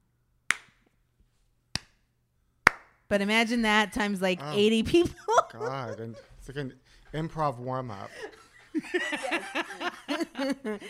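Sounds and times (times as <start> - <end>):
single hand claps: 0.5 - 0.8, 2.6 - 3.0
speech: 3.1 - 10.8
laughter: 4.6 - 6.8, 7.9 - 10.8.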